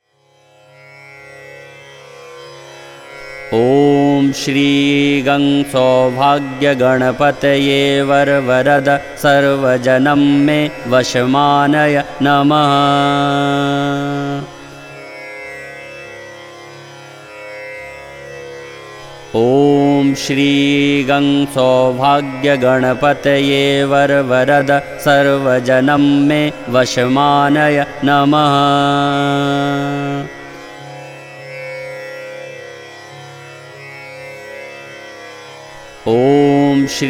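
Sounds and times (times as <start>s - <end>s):
mantra chanting: 3.5s - 14.7s, 19.3s - 30.5s, 36.0s - 37.0s.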